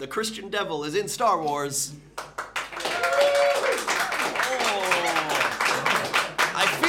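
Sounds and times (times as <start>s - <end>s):
speech: 0.0s - 2.4s
audience clapping: 2.2s - 6.8s.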